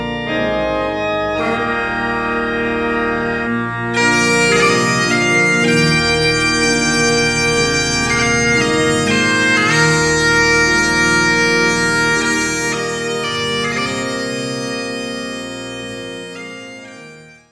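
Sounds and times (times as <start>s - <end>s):
concert: 0.2s - 17.1s.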